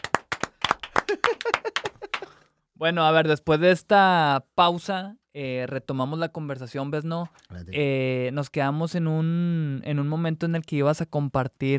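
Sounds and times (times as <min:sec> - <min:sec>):
hand clapping: 0:00.0 - 0:02.4
speech: 0:02.8 - 0:11.7.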